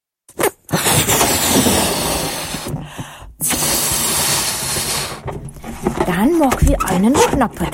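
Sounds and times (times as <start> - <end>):
air let out of a balloon: 0.7 - 5.4
speech: 6.1 - 7.7.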